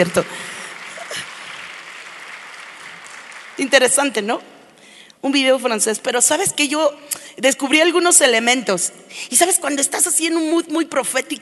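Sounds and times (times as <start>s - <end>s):
speech: 0.0s - 0.5s, 3.6s - 4.5s, 5.2s - 11.3s
audience applause: 0.0s - 4.2s.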